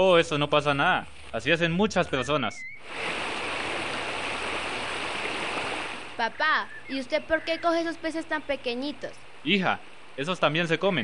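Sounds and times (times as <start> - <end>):
speech: 0.0 - 3.3, 6.2 - 11.0
flowing stream water: 2.8 - 6.2.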